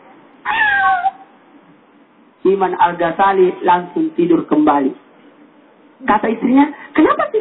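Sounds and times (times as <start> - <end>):
cat meowing: 0.4 - 1.3
speech: 2.4 - 5.0, 6.0 - 7.4.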